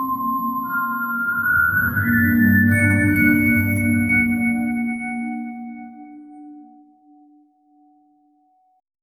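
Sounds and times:
creepy circus music: 0.2 - 5.7.

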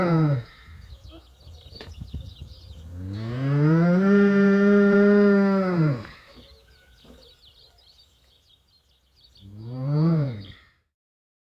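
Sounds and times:
cow mooing at farm: 3.0 - 6.2, 9.6 - 10.6.

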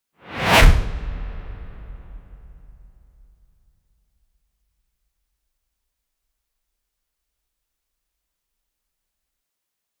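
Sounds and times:
powerful blow: 0.3 - 2.9.

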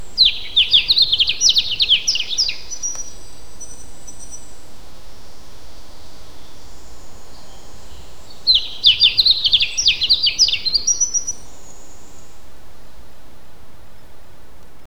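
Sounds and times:
exotic bird crying: 0.0 - 4.6, 6.4 - 12.6.

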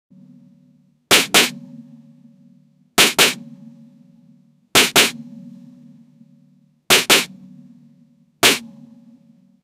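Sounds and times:
hand slap: 1.1 - 1.5, 3.0 - 3.4, 4.8 - 5.2, 6.9 - 7.3, 8.4 - 8.7.

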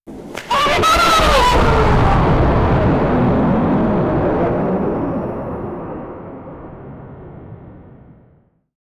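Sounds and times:
superhero launching: 0.4 - 6.4.

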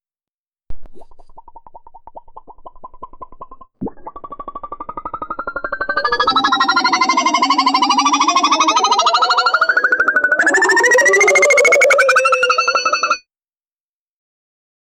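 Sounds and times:
funny sound effect: 3.9 - 13.2.

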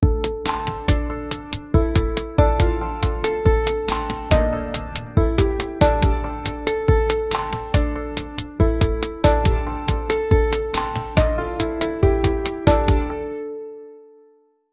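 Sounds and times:
easy tune: 0.0 - 14.4.

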